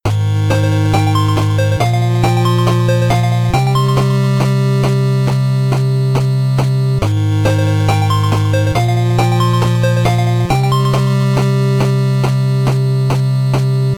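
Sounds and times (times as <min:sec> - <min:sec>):
8-bit menu background music: 0:00.1 - 0:13.9.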